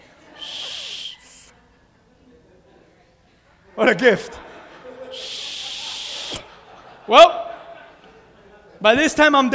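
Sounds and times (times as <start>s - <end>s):
laughter: 0.0s - 2.9s, 3.9s - 8.9s
weak blow on a small emergency whistle on a knife: 0.4s - 1.5s, 5.2s - 6.5s
speech: 3.8s - 4.5s, 7.1s - 7.4s, 8.8s - 9.5s.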